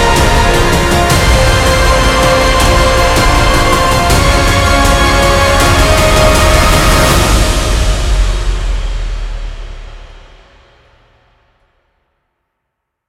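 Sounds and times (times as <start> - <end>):
motivational epic cinematic music: 0.0 - 11.2.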